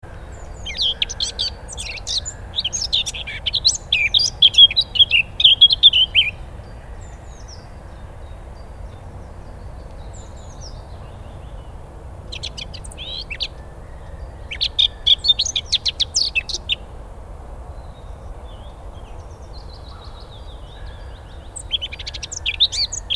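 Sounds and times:
Eurasian blackcap song: 0.0 - 6.6, 9.7 - 16.9, 20.6 - 23.1.

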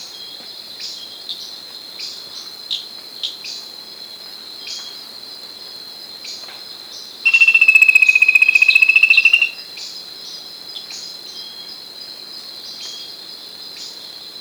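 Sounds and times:
high ticking insect-like buzz: 7.3 - 9.6
whistled bird call: 7.3 - 9.6.

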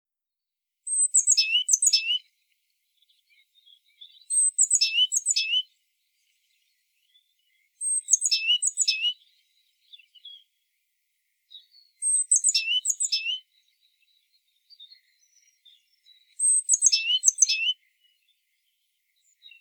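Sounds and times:
great tit calling: 0.9 - 2.3, 3.8 - 5.7, 7.1 - 10.4, 11.6 - 13.7, 14.8 - 17.8
quiet bird twittering: 0.9 - 19.5.

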